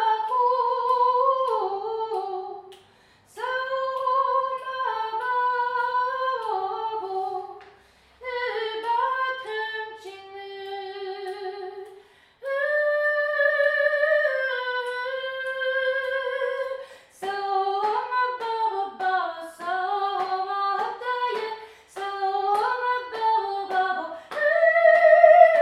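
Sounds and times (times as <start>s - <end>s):
soprano voice: 0.0s - 7.6s, 8.2s - 25.6s.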